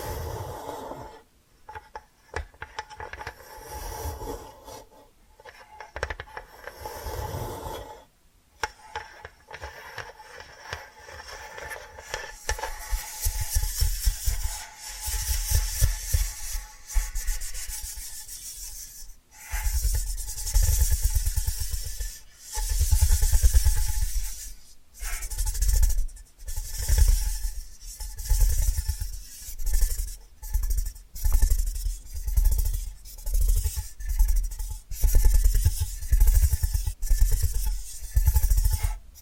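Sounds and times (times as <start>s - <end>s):
tapping and scratching: 1.7s - 3.4s, 5.4s - 6.7s, 8.6s - 39.1s
rough sanding or rasping strokes on wood: 10.9s - 39.1s.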